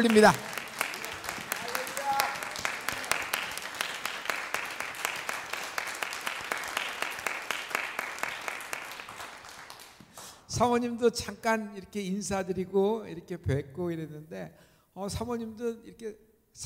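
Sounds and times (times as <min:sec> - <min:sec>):
speech: 0:00.0 - 0:00.5, 0:10.6 - 0:16.6
audience applauding: 0:00.0 - 0:10.3.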